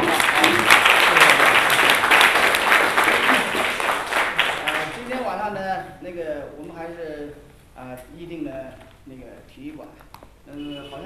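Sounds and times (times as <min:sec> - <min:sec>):
audience applause: 0:00.0 - 0:05.3
speech: 0:07.8 - 0:11.0.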